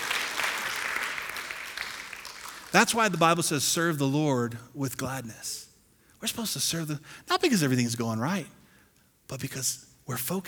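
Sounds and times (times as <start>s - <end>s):
audience applause: 0.0s - 3.2s
speech: 2.7s - 8.6s, 9.3s - 10.4s.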